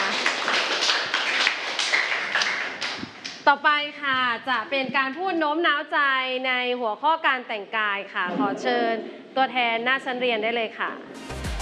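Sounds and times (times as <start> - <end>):
classroom group clapping: 0.0 - 3.4
speech: 3.4 - 11.2.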